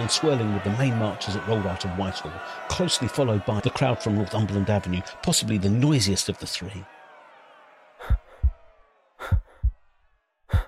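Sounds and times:
speech: 0:00.0 - 0:07.0
heartbeat sound effect: 0:08.0 - 0:09.8.

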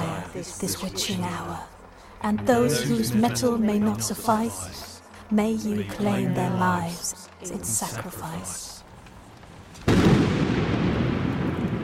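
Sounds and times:
speech: 0:00.4 - 0:08.7
lightning bolt striking a fire: 0:09.8 - 0:11.8.

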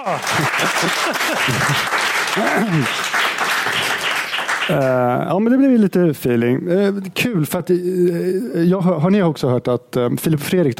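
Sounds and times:
audience applause: 0:00.0 - 0:05.0
speech: 0:00.0 - 0:10.7.

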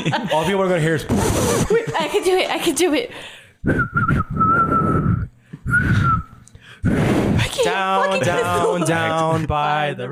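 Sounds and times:
laughter: 0:00.0 - 0:02.8, 0:07.5 - 0:09.6
speech: 0:00.0 - 0:04.7, 0:06.8 - 0:10.1
person whistling: 0:03.6 - 0:06.4.

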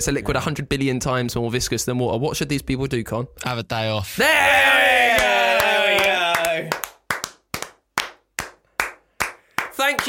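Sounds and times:
speech: 0:00.0 - 0:05.3, 0:09.9 - 0:10.0
hands clapping: 0:05.1 - 0:10.0.

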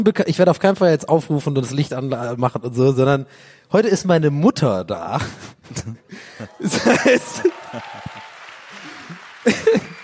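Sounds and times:
speech: 0:00.0 - 0:08.2, 0:09.4 - 0:10.0
laughter: 0:05.8 - 0:10.0
audience applause: 0:06.5 - 0:10.0.

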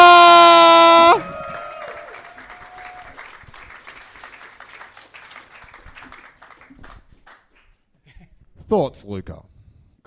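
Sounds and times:
audience applause and cheering: 0:00.0 - 0:07.6
speech: 0:08.7 - 0:10.0.

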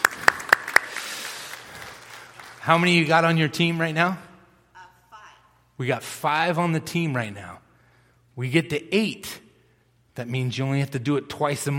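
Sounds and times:
audience applause: 0:00.0 - 0:03.0
speech: 0:02.6 - 0:04.3, 0:05.8 - 0:07.6, 0:08.4 - 0:09.4, 0:10.2 - 0:11.7.

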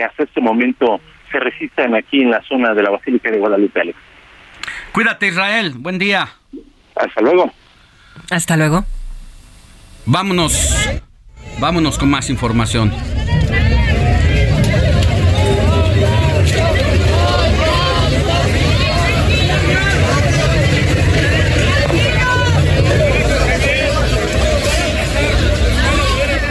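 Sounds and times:
speech: 0:00.0 - 0:04.1, 0:05.0 - 0:06.4, 0:07.0 - 0:07.6, 0:08.2 - 0:08.9, 0:10.1 - 0:13.6
crowd commotion outside Estadio Azteca: 0:08.3 - 0:26.4.

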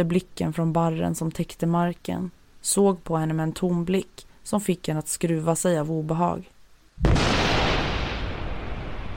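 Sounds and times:
speech: 0:00.0 - 0:07.3
sharp thunder crack: 0:07.0 - 0:09.1.

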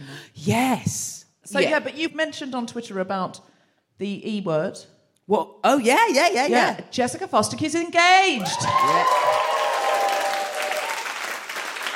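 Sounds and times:
speech: 0:00.4 - 0:09.7
audience round of applause: 0:08.4 - 0:11.9.

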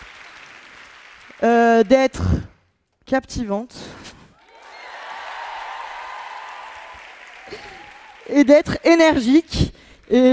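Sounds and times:
audience applause: 0:00.0 - 0:01.4, 0:04.4 - 0:10.3
speech: 0:01.4 - 0:02.5, 0:03.1 - 0:03.9, 0:08.3 - 0:10.3.

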